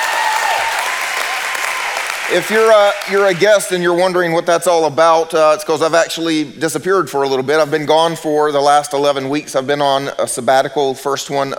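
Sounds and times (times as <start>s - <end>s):
audience applause: 0.0s - 3.8s
speech: 2.3s - 11.5s.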